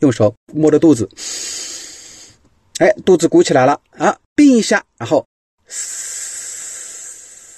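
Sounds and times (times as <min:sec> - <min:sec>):
speech: 0:00.0 - 0:01.6, 0:02.8 - 0:06.2
slow hissing exhale through the teeth during the 吐丝法 breathing exercise: 0:01.2 - 0:02.4, 0:05.6 - 0:07.5.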